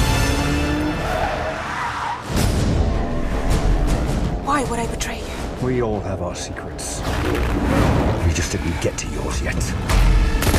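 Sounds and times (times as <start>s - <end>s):
car tires skidding and squealing in a James Bond No Time to Die trailer: 0.2s - 3.3s
speech: 4.6s - 10.5s.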